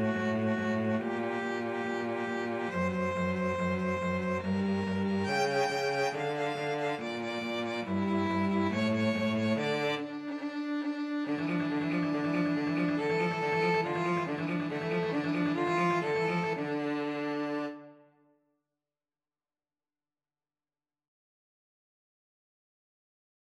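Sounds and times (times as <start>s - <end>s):
violin and cello duet: 0.0s - 18.0s.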